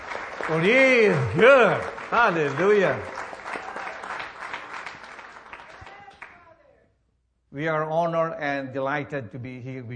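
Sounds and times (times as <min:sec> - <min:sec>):
audience clapping: 0:00.0 - 0:06.4
speech: 0:00.5 - 0:03.2, 0:07.6 - 0:09.9.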